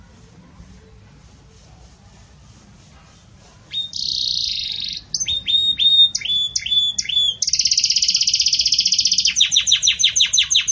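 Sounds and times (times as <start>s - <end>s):
Belgian canary song: 3.6s - 10.6s.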